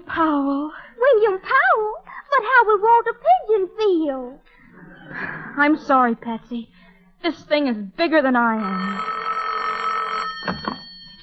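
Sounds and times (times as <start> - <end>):
speech: 0.2 - 9.2
telephone bell ringing: 8.6 - 11.2.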